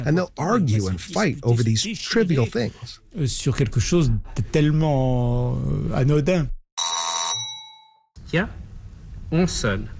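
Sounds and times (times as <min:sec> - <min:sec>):
speech: 0:00.0 - 0:06.6, 0:08.3 - 0:08.6, 0:09.3 - 0:09.9
doorbell ringing: 0:06.8 - 0:08.1.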